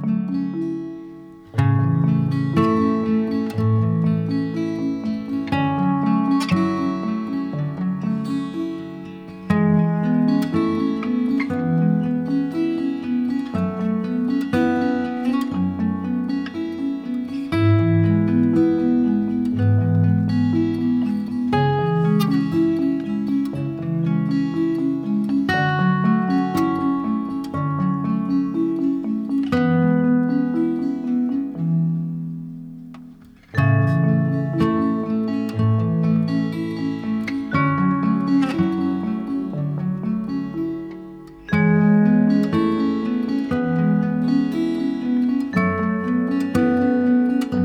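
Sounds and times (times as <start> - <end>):
luau instrumental lullaby: 0.1 - 47.6.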